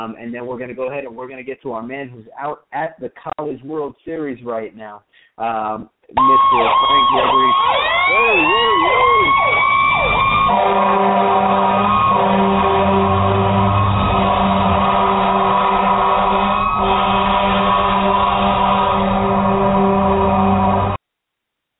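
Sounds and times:
speech: 0.0 - 9.5, 10.5 - 11.6
long siren: 6.2 - 21.0.

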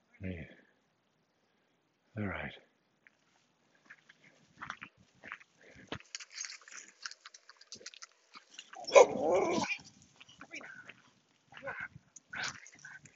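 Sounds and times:
speech: 2.2 - 2.7
faint clicking and scuffling: 3.0 - 13.1
German Shepherd barking: 8.8 - 9.8.

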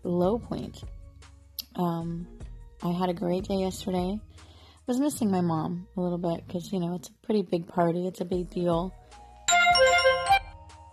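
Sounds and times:
speech: 0.2 - 1.0, 1.8 - 9.0
phone notification chime: 9.5 - 10.6.

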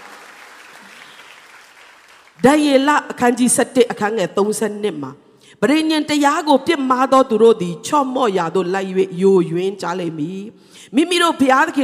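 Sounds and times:
church congregation applauding during a service: 0.0 - 2.6
speech: 2.4 - 11.8.

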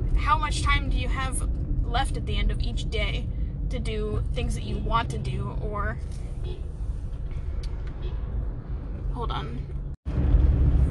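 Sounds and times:
car driving on a road: 0.0 - 10.8
speech: 0.2 - 6.7, 9.2 - 9.7.

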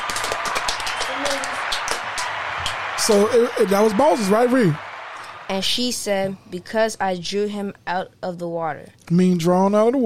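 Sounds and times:
applause: 0.0 - 5.9
speech: 3.1 - 4.9, 5.5 - 10.0.

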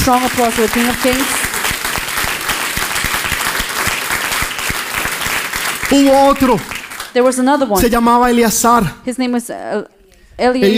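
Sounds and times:
speech: 0.0 - 1.5, 5.9 - 10.7
audience applause: 0.0 - 7.2.

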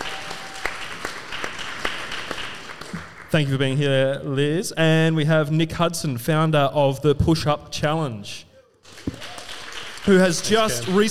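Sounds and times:
live audience applause: 0.0 - 3.4, 8.8 - 11.0
speech: 3.3 - 8.5, 10.1 - 11.0.

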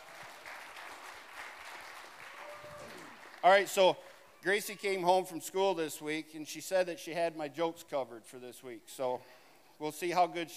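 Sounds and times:
audience applause: 0.0 - 4.2
speech: 3.4 - 10.5.

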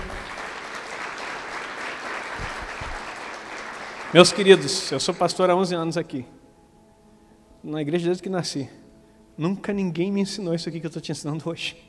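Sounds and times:
audience applauding: 0.0 - 5.2
speech: 4.1 - 6.4, 7.6 - 8.8, 9.4 - 11.8.

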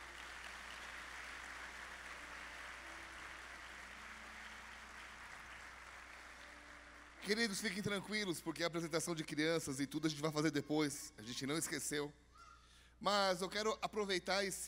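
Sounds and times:
audience applause: 0.0 - 7.5
speech: 7.2 - 12.2, 13.0 - 14.6.

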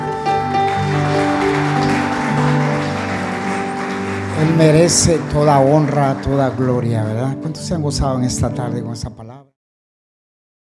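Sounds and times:
audience clapping hands: 0.0 - 7.4
speech: 4.6 - 9.5.

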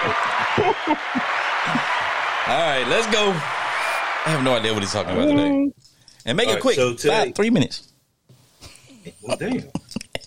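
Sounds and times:
applause sound effect: 0.0 - 5.2
speech: 0.1 - 1.8, 2.4 - 3.6, 4.2 - 7.9, 9.0 - 9.8.

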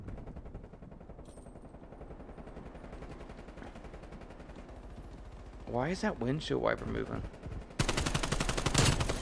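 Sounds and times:
speech: 5.7 - 7.4
video game gunfire shooting through a wall: 7.8 - 9.1.

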